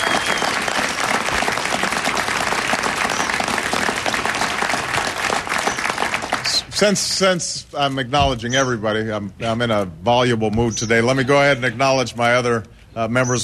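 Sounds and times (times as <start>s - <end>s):
audience applause: 0.0s - 6.7s
speech: 6.8s - 13.4s.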